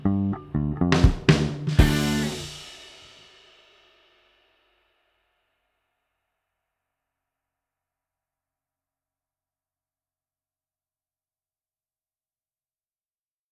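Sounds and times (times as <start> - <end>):
backing track with no lead: 0.0 - 2.9.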